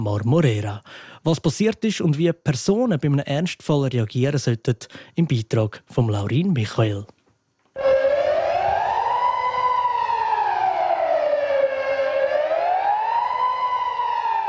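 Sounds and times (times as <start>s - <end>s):
speech: 0.0s - 7.2s
civil defense general alarm siren wailing: 7.8s - 14.4s.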